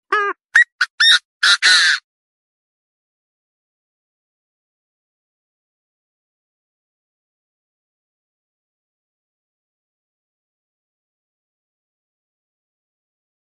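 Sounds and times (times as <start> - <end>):
partridge calling: 0.1 - 2.0.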